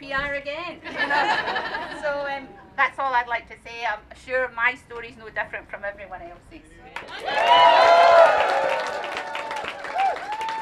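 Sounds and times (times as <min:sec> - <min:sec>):
speech: 0:00.0 - 0:09.2
laughter: 0:00.8 - 0:02.2
audience applause: 0:07.0 - 0:10.6.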